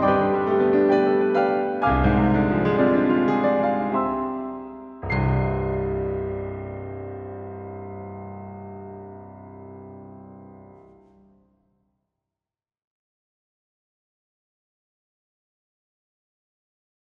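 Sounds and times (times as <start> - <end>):
piano duo playing: 0.0 - 11.2.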